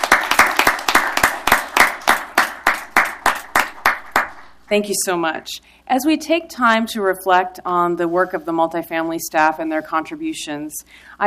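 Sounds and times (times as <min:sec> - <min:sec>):
round of applause in council chambers: 0:00.0 - 0:04.6
speech: 0:04.7 - 0:11.2.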